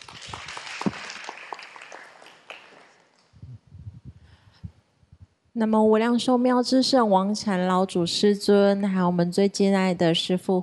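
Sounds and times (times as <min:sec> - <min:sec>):
audience applause: 0:00.0 - 0:03.1
speech: 0:05.6 - 0:10.6.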